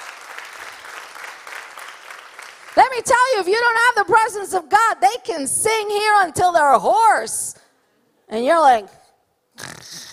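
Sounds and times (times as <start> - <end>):
church congregation clapping: 0.0 - 3.0
speech: 2.9 - 7.6, 8.3 - 9.0.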